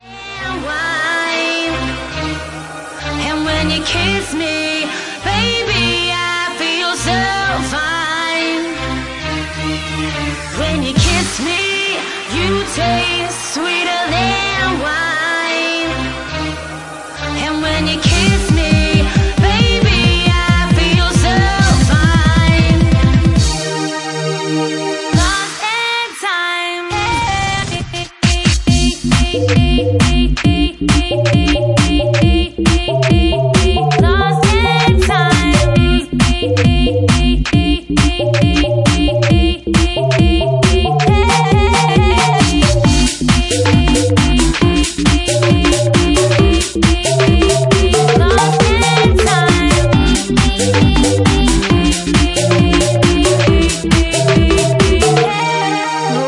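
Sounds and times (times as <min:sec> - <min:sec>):
bassline mix: 0:00.0 - 0:25.5, 0:26.9 - 0:56.2.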